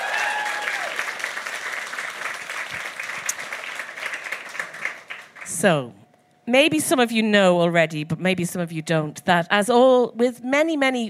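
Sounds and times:
audience applause: 0.0 - 5.5
speech: 5.6 - 11.0.

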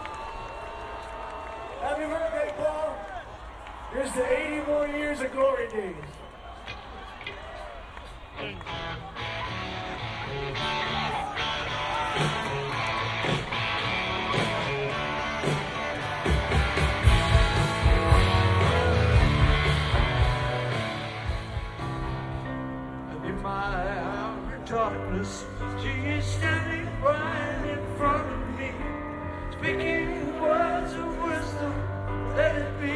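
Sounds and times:
crowd noise at Glastonbury Festival: 0.0 - 32.9
music with a heavy low beat at Glastonbury Festival: 12.1 - 22.0.

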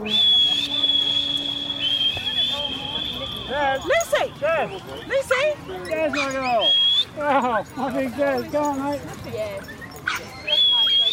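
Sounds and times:
person whistling to call a dog: 0.0 - 3.8, 6.6 - 7.1
speech: 3.6 - 9.8.

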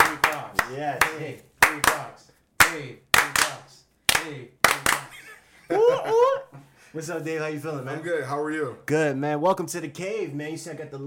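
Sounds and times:
audience hand claps: 0.0 - 5.2
speech: 0.7 - 11.0
laughter: 5.0 - 6.6.

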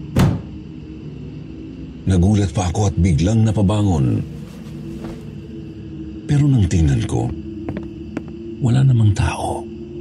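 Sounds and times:
quiet hum: 0.0 - 9.9
door slamming shut: 0.2 - 0.5
speech: 2.0 - 4.4, 6.3 - 7.4, 8.6 - 9.7.

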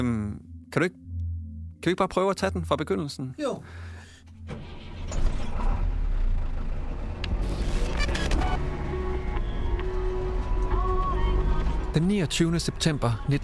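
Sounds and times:
speech: 0.0 - 1.0, 1.8 - 3.9, 11.9 - 13.4
car driving: 4.3 - 13.4.

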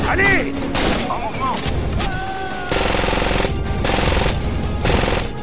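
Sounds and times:
speech: 0.1 - 1.8
gunfire with silencers in a video game: 2.7 - 5.3.

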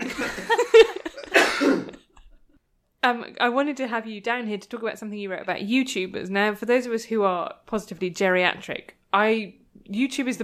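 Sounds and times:
laughter: 0.0 - 1.4
person coughing: 1.1 - 2.2
speech: 3.0 - 10.4.

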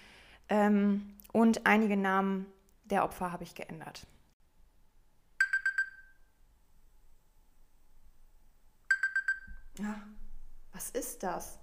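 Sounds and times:
speech: 0.6 - 4.2, 9.8 - 10.2, 10.8 - 11.6
alarm clock beeping: 5.4 - 6.2, 8.9 - 9.7.

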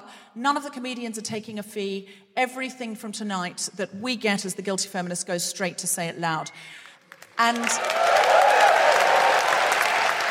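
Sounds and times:
speech: 0.4 - 6.8, 7.4 - 8.2
audience applauding at a live comedy charity fundraiser: 7.1 - 10.2.

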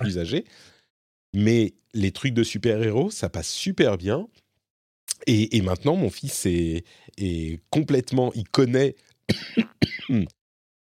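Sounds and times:
speech: 0.1 - 4.4, 5.2 - 10.4
harsh coughing fit: 9.3 - 10.4.

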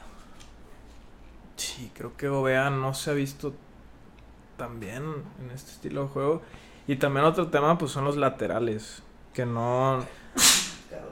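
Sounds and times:
speech: 1.8 - 3.7, 4.6 - 11.1
loud breathy sneeze: 10.2 - 11.0.

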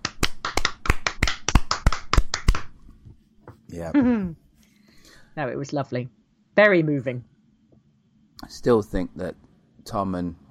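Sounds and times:
hand clapping: 0.0 - 2.8
speech: 3.7 - 4.4, 5.4 - 7.3, 8.5 - 10.4.

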